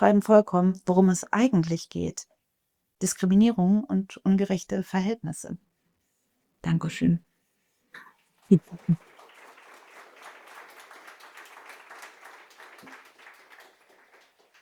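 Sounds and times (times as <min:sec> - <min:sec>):
speech: 0:00.0 - 0:02.3, 0:03.0 - 0:05.7, 0:06.6 - 0:07.3, 0:07.9 - 0:09.1
applause: 0:08.5 - 0:14.6.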